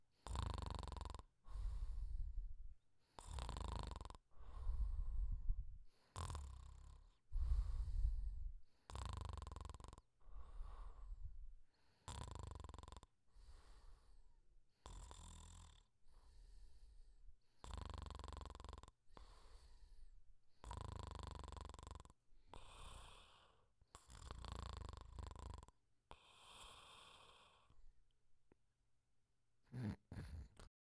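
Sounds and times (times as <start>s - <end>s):
snoring: 0.2s - 2.4s, 3.1s - 11.2s, 11.9s - 14.1s, 14.8s - 16.5s, 17.6s - 19.9s, 20.6s - 27.8s, 29.7s - 30.7s.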